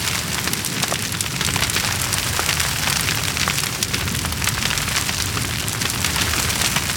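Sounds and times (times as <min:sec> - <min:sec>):
tree fire: 0:00.0 - 0:06.9.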